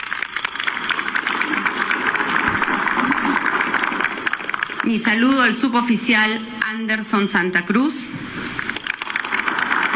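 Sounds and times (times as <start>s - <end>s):
crowd applauding: 0.0s - 5.9s, 8.6s - 9.9s
speech: 4.9s - 8.2s.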